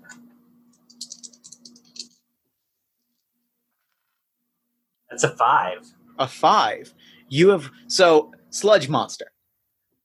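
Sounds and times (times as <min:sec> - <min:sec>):
two dice being rolled: 0:00.9 - 0:02.1
speech: 0:05.2 - 0:09.4.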